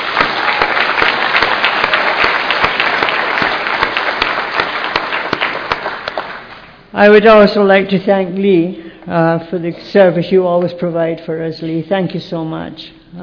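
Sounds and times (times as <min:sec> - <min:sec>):
audience applause: 0:00.0 - 0:06.8
speech: 0:07.0 - 0:13.2.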